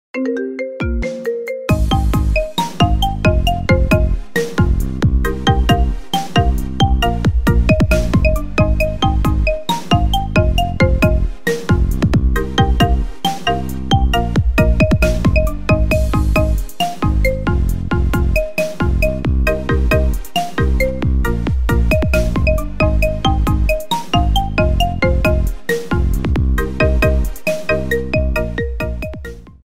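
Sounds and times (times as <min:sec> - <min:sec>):
marimba ringtone: 0:00.2 - 0:29.5.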